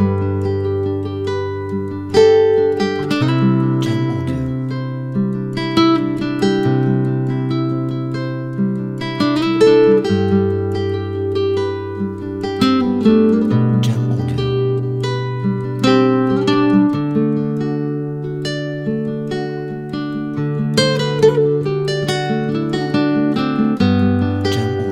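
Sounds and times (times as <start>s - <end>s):
background guitar music: 0.0s - 24.9s.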